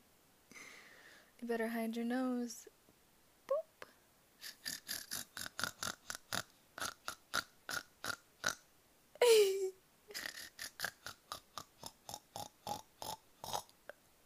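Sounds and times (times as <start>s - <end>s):
speech: 1.5s - 2.8s
person imitating a pig's grunting: 4.4s - 8.6s, 9.2s - 13.7s.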